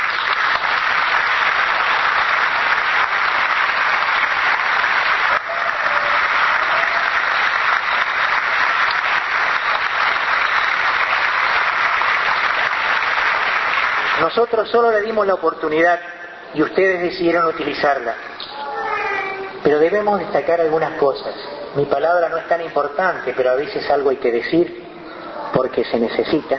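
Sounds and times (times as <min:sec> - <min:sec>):
sustained audience applause: 0:00.0 - 0:14.6
speech: 0:14.3 - 0:18.3, 0:19.6 - 0:24.8, 0:25.5 - 0:26.5.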